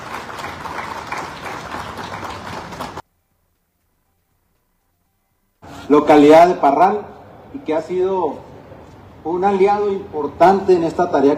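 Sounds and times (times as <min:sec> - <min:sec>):
audience applause: 0:00.0 - 0:03.0
speech: 0:05.9 - 0:08.5, 0:09.2 - 0:11.3.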